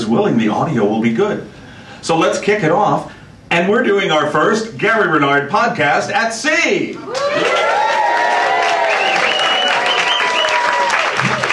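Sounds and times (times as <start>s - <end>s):
speech: 0.1s - 7.7s
audience applause: 7.0s - 11.5s.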